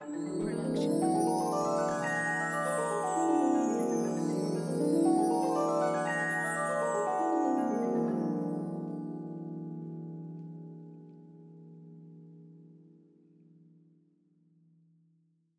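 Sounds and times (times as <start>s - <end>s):
fantasy glissando: 0.0s - 9.4s.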